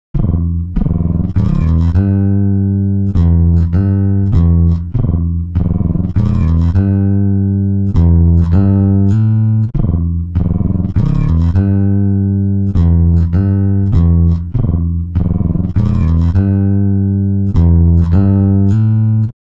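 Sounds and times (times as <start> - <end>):
bass: 0.0 - 19.5.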